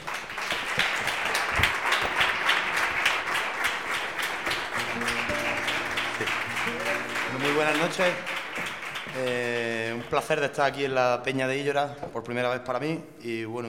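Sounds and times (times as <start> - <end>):
audience applause: 0.0 - 10.4
speech: 7.6 - 8.3, 9.2 - 13.6.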